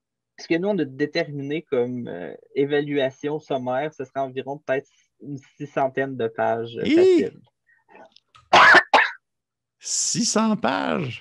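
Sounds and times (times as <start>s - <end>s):
speech: 0.4s - 8.2s, 9.8s - 11.1s
person coughing after choking: 8.5s - 9.2s.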